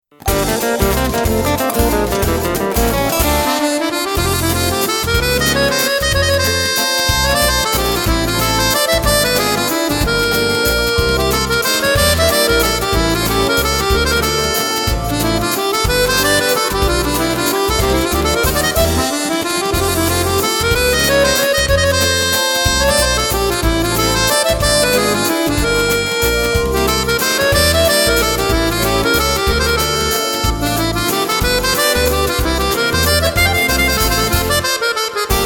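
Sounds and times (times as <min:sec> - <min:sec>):
swing waltz music: 0:00.2 - 0:35.4.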